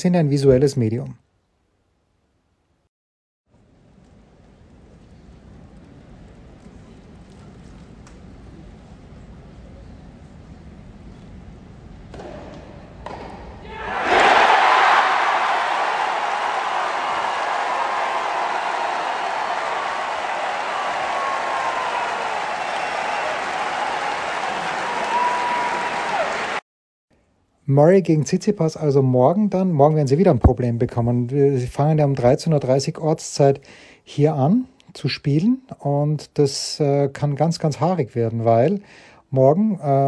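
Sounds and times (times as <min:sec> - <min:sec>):
speech: 0:00.0 - 0:01.2, 0:27.7 - 0:40.0
Wimbledon crowd cheering and applauding tiebreak point: 0:13.7 - 0:26.6.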